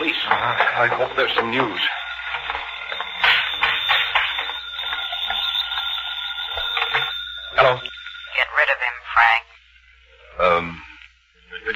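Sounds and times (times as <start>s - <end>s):
telephone bell ringing: 0.0s - 9.3s
speech: 0.8s - 2.0s, 7.6s - 7.9s.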